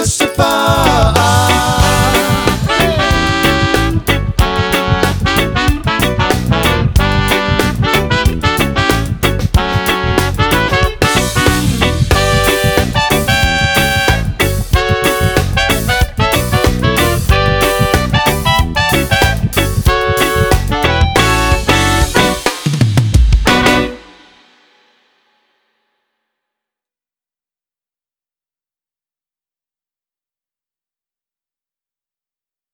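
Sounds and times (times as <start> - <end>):
live dub music: 0.0 - 24.4.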